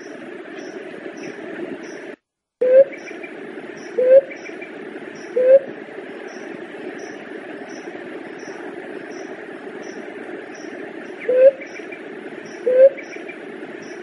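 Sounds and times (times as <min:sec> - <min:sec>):
Leptotila dove cooing: 0:02.6 - 0:03.1, 0:03.8 - 0:04.6, 0:05.2 - 0:05.7, 0:11.2 - 0:13.2.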